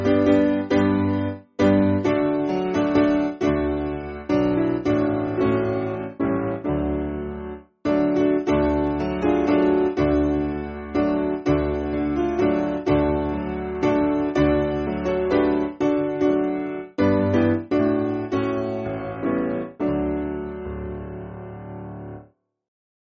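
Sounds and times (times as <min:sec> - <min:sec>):
piano backing music for churches: 0:00.0 - 0:22.2.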